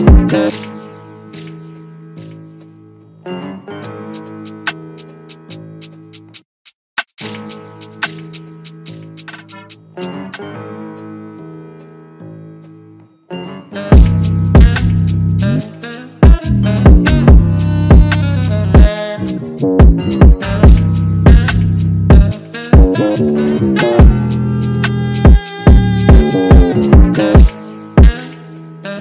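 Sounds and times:
UK drill music beat: 0:00.0 - 0:01.6, 0:07.0 - 0:10.6, 0:13.8 - 0:28.9.

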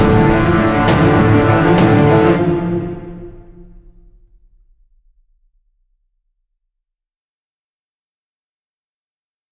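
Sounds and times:
cinematic orchestral action trailer music: 0:00.0 - 0:05.3.

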